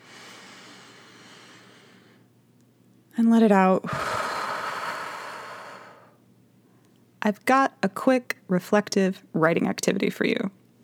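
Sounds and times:
deep breath in through nose: 0.0s - 2.3s, 3.9s - 6.2s
speech: 3.2s - 4.1s, 7.3s - 10.6s.

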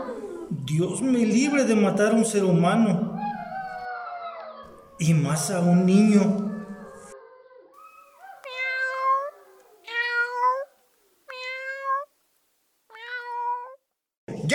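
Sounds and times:
speech: 0.7s - 3.2s, 5.0s - 6.5s
cat meowing: 7.8s - 12.1s, 12.9s - 13.8s.

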